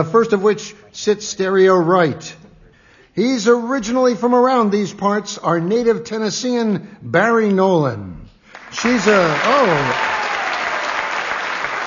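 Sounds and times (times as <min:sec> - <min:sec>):
speech: 0:00.0 - 0:02.4, 0:03.2 - 0:08.1, 0:08.7 - 0:10.2
audience applause: 0:08.5 - 0:11.8
person whooping: 0:09.4 - 0:11.0.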